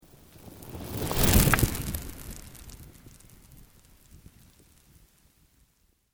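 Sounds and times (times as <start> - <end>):
slow organic sweep: 0.0 - 4.5.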